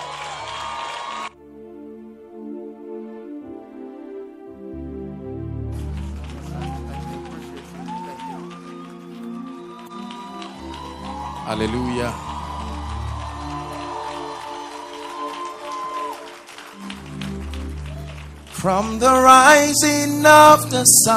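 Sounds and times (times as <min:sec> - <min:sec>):
audience clapping: 0:00.0 - 0:01.3, 0:05.6 - 0:21.1
speech: 0:11.5 - 0:12.3, 0:18.6 - 0:21.1.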